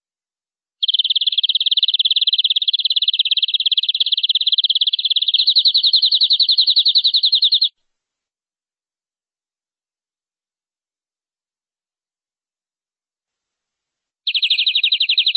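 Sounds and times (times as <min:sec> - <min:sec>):
canary trilling: 0:00.8 - 0:07.7, 0:14.3 - 0:15.3.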